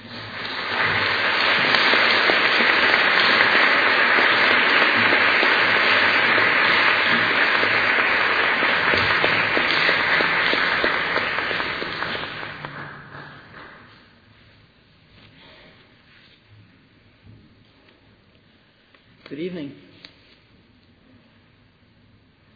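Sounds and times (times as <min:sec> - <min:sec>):
audience applause welcoming the co-abbess of the San Francisco Zen Center: 0:00.0 - 0:14.0.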